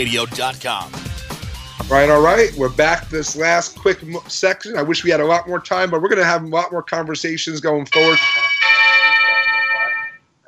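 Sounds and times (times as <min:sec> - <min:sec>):
speech: 0:00.0 - 0:01.0, 0:01.8 - 0:08.5
bell signaling time running short: 0:07.9 - 0:10.4.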